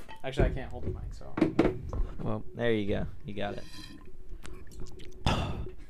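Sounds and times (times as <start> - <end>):
speech: 0.2 - 4.0
person drinking water: 3.6 - 5.8.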